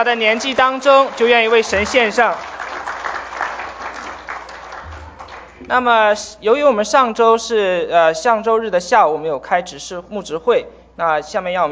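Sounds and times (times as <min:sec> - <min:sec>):
speech: 0:00.0 - 0:02.5, 0:05.7 - 0:11.6
church congregation applause for a group of children: 0:00.0 - 0:05.6.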